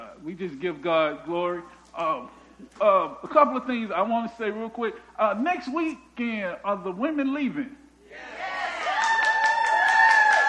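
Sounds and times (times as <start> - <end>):
speech: 0.2 - 8.3
church congregation whooping and shouting: 8.1 - 10.4
scattered clapping: 9.0 - 10.4.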